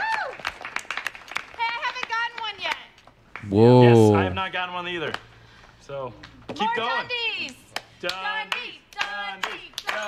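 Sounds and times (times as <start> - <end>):
slow hand claps: 0.0 - 3.5, 7.4 - 10.0
speech: 3.4 - 5.2, 5.9 - 8.7
person murmuring: 3.5 - 4.4.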